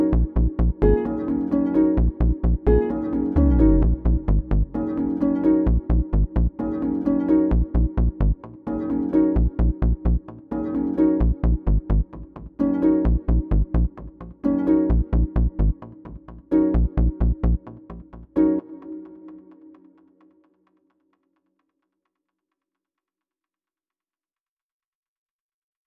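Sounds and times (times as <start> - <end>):
atmospheric ambient groove music: 0.0 - 20.5.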